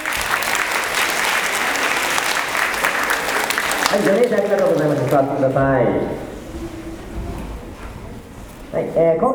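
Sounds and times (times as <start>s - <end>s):
applause in a school gymnasium: 0.0s - 5.3s
speech: 3.9s - 6.3s, 8.7s - 9.3s.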